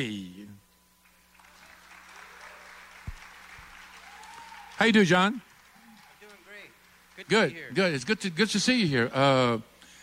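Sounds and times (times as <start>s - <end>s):
speech: 0.0s - 0.3s, 4.8s - 5.5s, 7.2s - 9.7s
faint hum: 0.0s - 10.0s
audience applause welcoming a guest onto a show: 1.3s - 7.7s.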